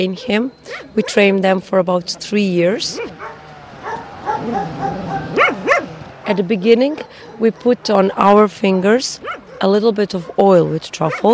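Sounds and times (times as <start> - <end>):
speech: 0.0 - 3.4, 4.4 - 5.0, 6.3 - 11.3
truffle dog barking: 0.7 - 1.3, 2.9 - 7.8, 9.2 - 11.3.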